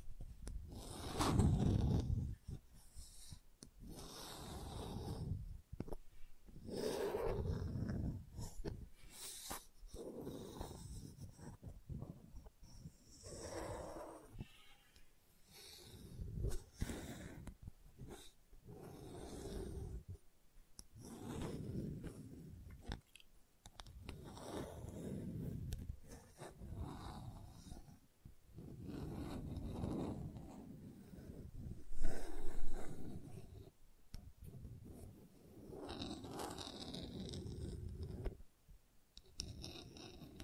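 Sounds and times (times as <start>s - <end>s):
gentle scratching: 0.0s - 20.2s, 20.8s - 38.5s, 39.2s - 40.4s.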